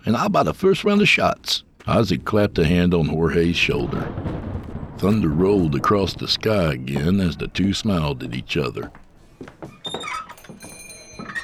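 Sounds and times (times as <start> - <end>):
speech: 0.0 - 4.4, 5.0 - 9.5
door of the Oriental Saloon squealing open: 9.6 - 11.4.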